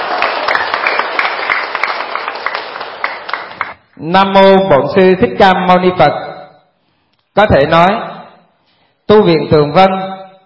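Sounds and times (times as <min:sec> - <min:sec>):
crowd applause at a Buddhist monastery ceremony at Tường Vân monastery: 0:00.0 - 0:03.8
speech: 0:04.0 - 0:06.2, 0:07.4 - 0:08.1, 0:09.1 - 0:10.1.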